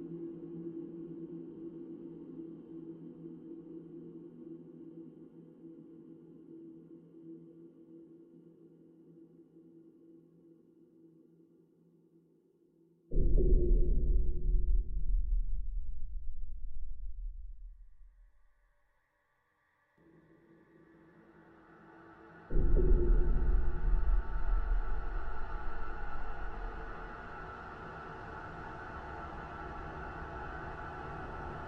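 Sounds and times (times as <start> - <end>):
infection ambience: 13.1 - 18.2, 20.8 - 31.6.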